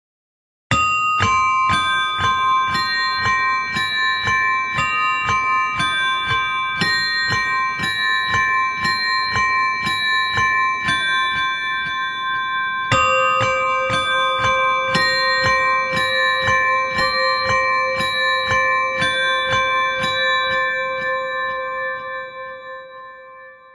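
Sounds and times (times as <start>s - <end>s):
spooky bells: 0.7s - 23.7s.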